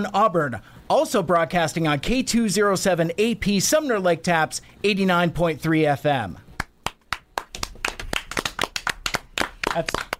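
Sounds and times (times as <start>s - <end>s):
speech: 0.0s - 6.4s, 9.8s - 10.0s
people clapping in the studio: 6.6s - 10.1s.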